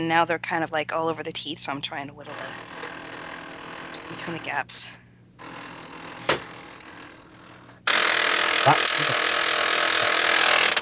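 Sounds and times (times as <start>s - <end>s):
speech: 0.0s - 2.8s, 4.1s - 5.0s
old printer whirring and grinding: 2.3s - 4.4s, 5.4s - 10.7s.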